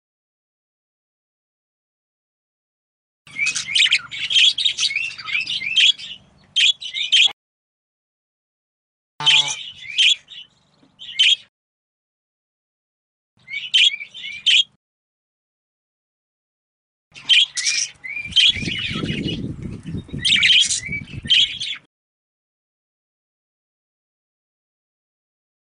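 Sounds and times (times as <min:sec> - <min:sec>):
budgerigar harsh chirps and warbling calls: 0:03.3 - 0:07.3, 0:09.2 - 0:11.5, 0:13.5 - 0:14.7, 0:17.2 - 0:19.3.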